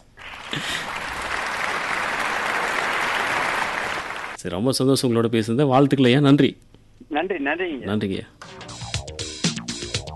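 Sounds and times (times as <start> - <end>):
recorded applause sound effect from a large crowd: 0.2 - 4.4
speech: 4.4 - 8.5.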